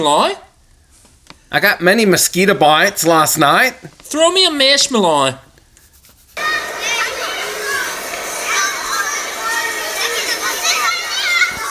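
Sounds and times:
speech: 0.0s - 0.5s, 1.5s - 5.5s
children playing in a gym: 6.4s - 11.6s.

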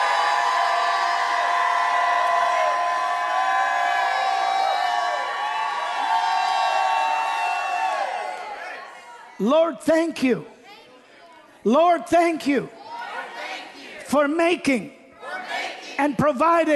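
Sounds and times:
audience shouting and cheering: 0.0s - 9.4s
speech: 9.4s - 10.5s, 11.6s - 12.8s, 14.1s - 15.0s, 16.0s - 16.7s.

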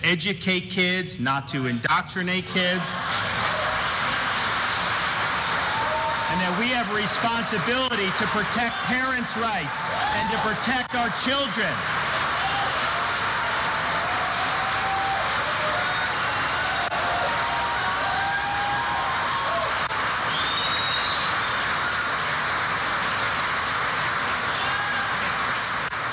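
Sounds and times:
speech: 0.0s - 3.3s, 6.4s - 12.1s
loud sustained applause: 2.5s - 26.1s.

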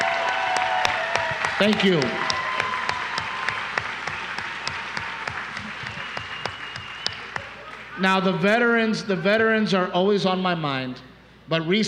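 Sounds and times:
audience clapping: 0.0s - 8.2s
speech: 1.6s - 2.2s, 8.0s - 11.8s.

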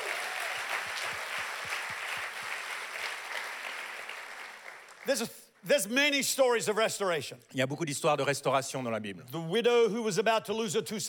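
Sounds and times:
church congregation clapping in praise during a sermon: 0.0s - 5.8s
speech: 5.0s - 11.0s.

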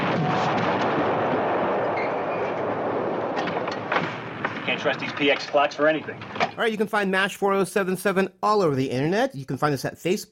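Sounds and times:
artillery shell explosion: 0.0s - 6.6s
speech: 4.8s - 10.3s.

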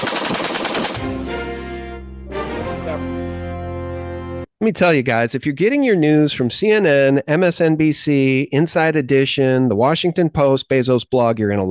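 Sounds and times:
rapid gunfire from a semi-automatic weapon with rapid-fire device: 0.0s - 1.2s
speech: 2.9s - 3.5s, 4.6s - 11.6s.

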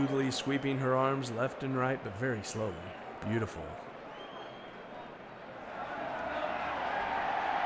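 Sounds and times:
speech: 0.0s - 3.9s
arena crowd roaring: 5.7s - 7.6s.

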